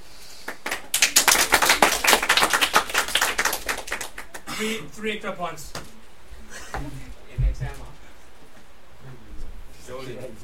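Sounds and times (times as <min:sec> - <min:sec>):
group clapping: 0:00.4 - 0:04.5
speech: 0:04.6 - 0:05.9, 0:06.7 - 0:07.8.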